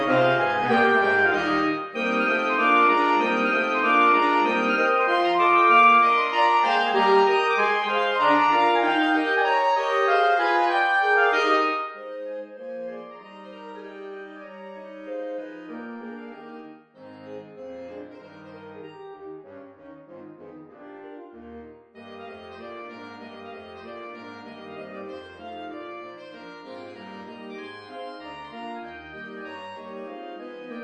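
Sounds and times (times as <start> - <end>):
saxophone: 0.0 - 12.2.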